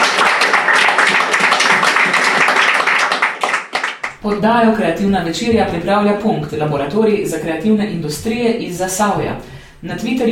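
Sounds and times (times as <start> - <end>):
crowd applauding: 0.0 - 4.2
speech: 4.2 - 10.3.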